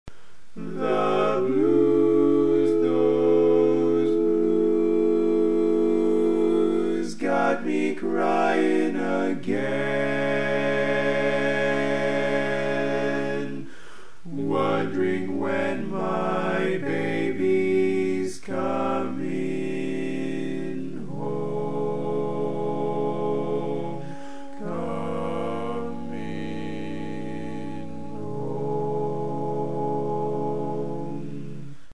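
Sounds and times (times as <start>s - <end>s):
bass: 0.1s - 31.9s.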